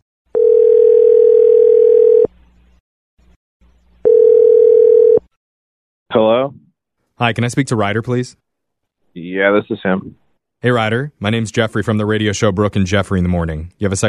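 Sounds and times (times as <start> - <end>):
telephone dial tone: 0.3 - 2.3, 4.1 - 5.3
speech: 7.2 - 8.5, 9.1 - 14.0.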